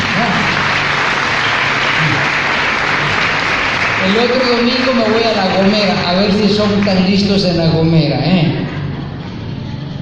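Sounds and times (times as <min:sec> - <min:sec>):
audience applause: 0:00.0 - 0:07.4
speech: 0:04.0 - 0:08.8.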